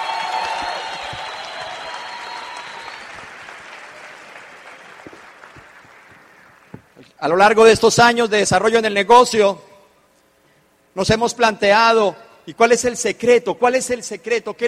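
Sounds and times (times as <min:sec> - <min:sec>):
audience applause: 0:00.0 - 0:07.0
speech: 0:07.2 - 0:09.7, 0:11.0 - 0:14.6.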